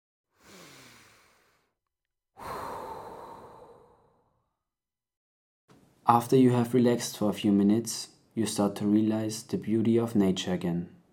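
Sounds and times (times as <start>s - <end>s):
person breathing in and out: 0.3s - 1.8s, 2.4s - 4.4s
speech: 6.1s - 11.0s.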